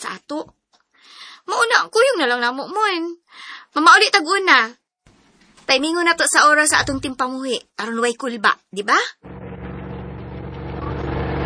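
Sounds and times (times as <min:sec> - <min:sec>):
speech: 0:00.0 - 0:00.6, 0:01.6 - 0:04.8, 0:05.7 - 0:09.3
jeep engine rumbling: 0:09.2 - 0:11.4.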